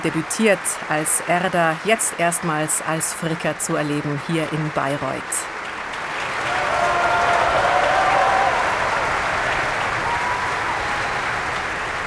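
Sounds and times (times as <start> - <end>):
speech: 0.0 - 5.6
opera audience applauding in a hall: 0.0 - 12.0.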